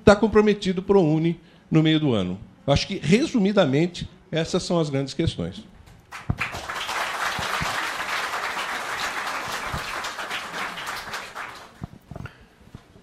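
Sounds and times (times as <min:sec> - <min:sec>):
speech: 0:00.1 - 0:06.5
audience applause: 0:06.1 - 0:12.0.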